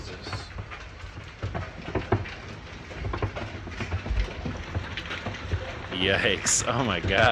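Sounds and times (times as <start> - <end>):
large hailstones falling: 0.0 - 7.2
speech: 6.0 - 7.2.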